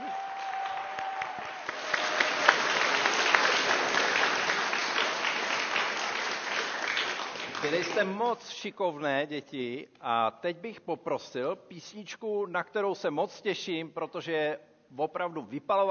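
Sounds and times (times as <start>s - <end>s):
audience applauding children: 0.0s - 8.1s
speech: 7.6s - 15.9s.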